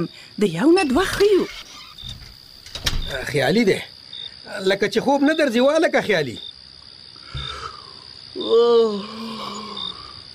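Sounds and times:
speech: 0.0s - 1.7s, 3.1s - 6.5s, 8.4s - 9.3s
insects chirping: 0.0s - 10.3s
boy groaning and moaning in pain at night: 8.4s - 10.0s.

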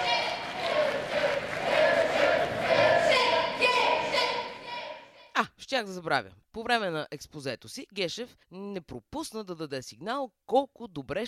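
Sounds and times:
crowd applauding: 0.0s - 4.7s
murmuring voices: 0.0s - 5.0s
shouts: 0.0s - 5.3s
speech: 5.8s - 11.2s.

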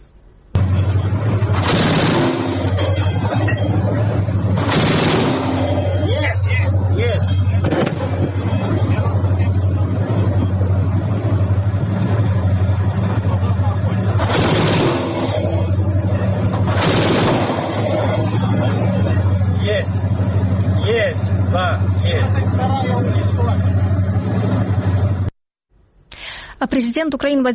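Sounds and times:
constant low humming engine drone: 0.0s - 26.5s
self-propelled anti-aircraft gun firing during shelling: 0.6s - 6.1s, 7.6s - 8.9s, 14.0s - 18.4s
speech: 26.8s - 27.5s.

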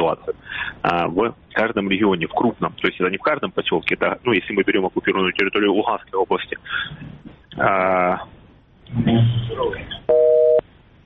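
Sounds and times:
speech: 0.1s - 10.4s
telephone busy tone after call dropped: 10.1s - 11.0s.

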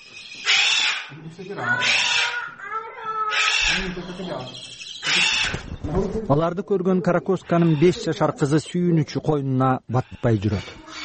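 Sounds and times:
quieter chattering calls: 0.0s - 11.0s
South American parrots and monkeys shrieking: 0.1s - 5.8s, 7.4s - 8.1s, 10.1s - 11.0s
speech: 1.4s - 2.2s, 3.7s - 10.8s.

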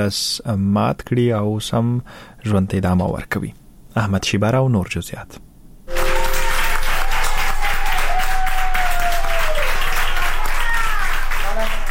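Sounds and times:
speech: 0.0s - 5.4s
doctors and nurses clapping for a recovered 104-year-old Covid-19 patient in Plasencia, Spain: 5.9s - 11.8s.

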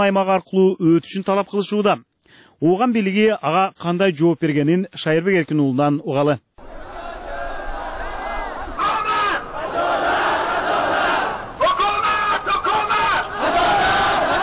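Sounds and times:
speech: 0.0s - 6.5s
thousands of Hazara protesters chanting for justice in Kabul streets: 6.6s - 14.4s.

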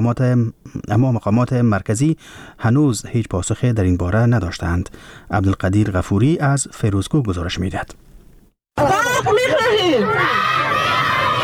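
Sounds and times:
speech: 0.0s - 8.1s, 8.8s - 10.7s
crowd of protesters at a sit-in: 8.8s - 11.4s.

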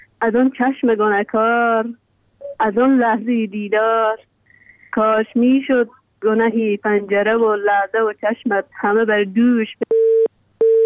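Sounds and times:
woman reciting over a phone line: 0.0s - 9.9s
speech: 0.2s - 2.0s, 2.6s - 4.3s, 5.0s - 10.0s
phone busy tone beeps: 9.8s - 10.8s.

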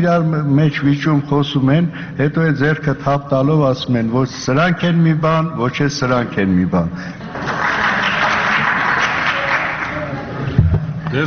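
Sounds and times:
speech: 0.0s - 7.9s
applause in a parliament chamber after a member's speech: 7.3s - 10.4s.

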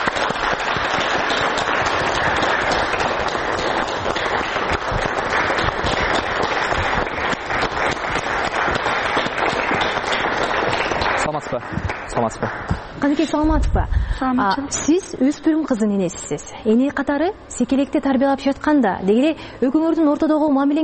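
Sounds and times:
applause welcoming a parent guest: 0.0s - 13.0s
speech: 13.2s - 20.8s.

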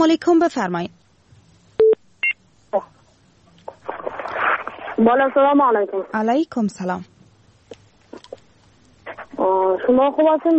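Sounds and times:
speech: 0.0s - 1.0s, 2.7s - 2.9s, 5.0s - 7.1s, 9.4s - 10.5s
telephone line beeps as a call connects: 1.8s - 2.4s.

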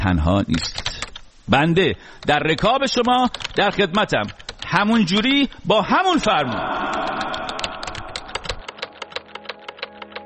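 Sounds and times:
speech: 0.0s - 0.9s, 1.5s - 7.3s
fingers typing on a keyboard: 0.5s - 1.2s, 2.2s - 5.3s, 6.8s - 10.2s.

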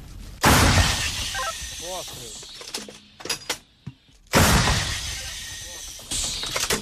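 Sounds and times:
artillery cannon firing: 0.4s - 1.8s, 4.3s - 6.8s.

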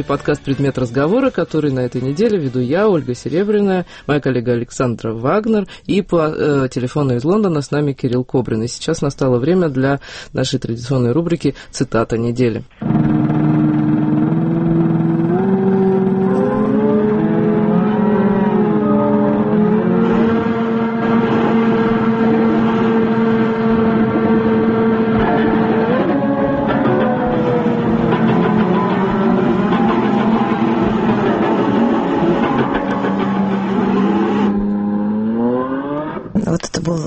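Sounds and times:
speech: 0.0s - 13.1s
futurist noise machines intonarumori roaring: 12.8s - 36.4s.

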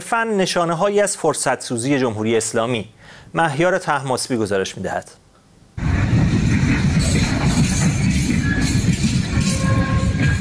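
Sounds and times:
speech: 0.1s - 5.2s
freight train rolling along the rails: 5.8s - 10.4s
metallic squeals: 7.0s - 10.4s.

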